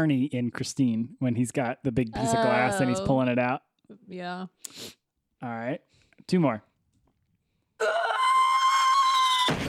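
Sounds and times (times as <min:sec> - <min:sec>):
speech: 0:00.0 - 0:06.7, 0:07.8 - 0:08.0
woman screaming while giving birth: 0:02.2 - 0:03.1, 0:07.8 - 0:09.5.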